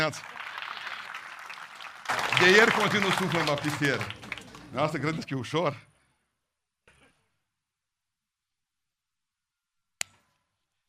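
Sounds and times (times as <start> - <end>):
speech: 0.0 - 0.4, 2.4 - 5.9
audience applause: 0.0 - 5.2.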